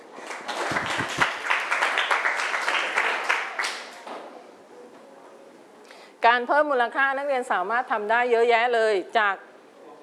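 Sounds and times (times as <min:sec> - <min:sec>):
classroom applause: 0:00.2 - 0:04.0
speech: 0:06.2 - 0:09.5.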